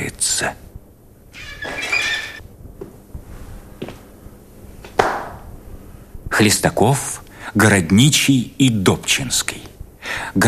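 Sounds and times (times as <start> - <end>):
speech: 0.0 - 0.6, 6.4 - 9.7
door handle turning with a squeaky metallic creak: 1.4 - 2.4.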